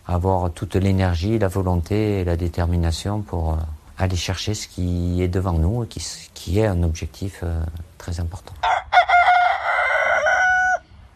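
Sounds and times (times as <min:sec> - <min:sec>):
speech: 0:00.1 - 0:08.8
hoarse rooster crowing: 0:08.6 - 0:11.0.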